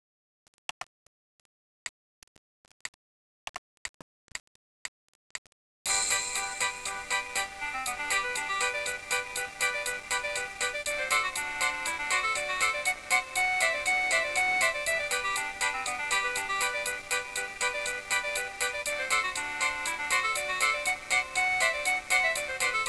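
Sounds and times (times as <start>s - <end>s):
polka music: 5.9s - 22.8s.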